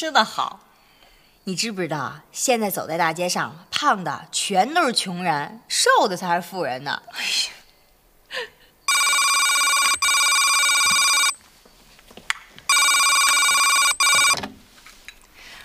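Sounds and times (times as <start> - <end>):
speech: 0.0 - 0.7, 1.5 - 7.6, 8.3 - 8.6
telephone ringing: 8.9 - 11.4, 12.7 - 14.4.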